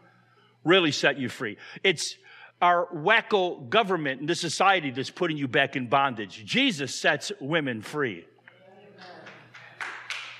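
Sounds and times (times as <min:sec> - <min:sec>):
speech: 0:00.6 - 0:08.3
a few people applauding: 0:09.1 - 0:10.3.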